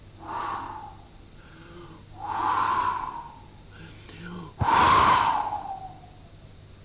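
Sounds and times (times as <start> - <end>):
voice imitating a wolf blowing hard: 0.2 - 3.5, 4.6 - 6.0.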